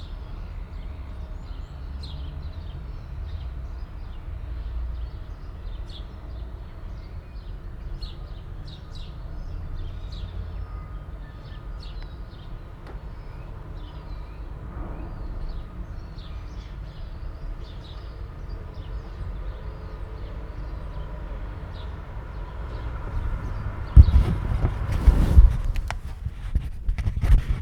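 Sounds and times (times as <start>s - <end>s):
birds at Port Chalmers: 0.0s - 27.6s.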